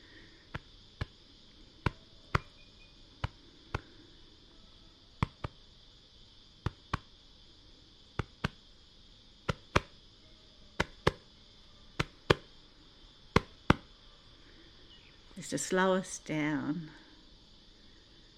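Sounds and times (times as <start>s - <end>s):
ceremonial drumming on possum skin cloak: 1.8s - 2.5s, 5.2s - 5.6s, 6.6s - 7.1s, 8.2s - 8.6s, 9.5s - 9.9s, 10.8s - 11.2s, 12.0s - 12.5s, 13.4s - 13.9s
speech: 15.4s - 17.0s.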